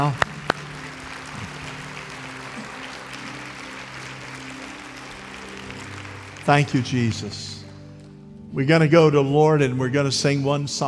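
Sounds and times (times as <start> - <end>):
speech: 0.0 - 0.3, 6.5 - 7.5, 8.5 - 10.8
audience clapping: 0.0 - 8.1.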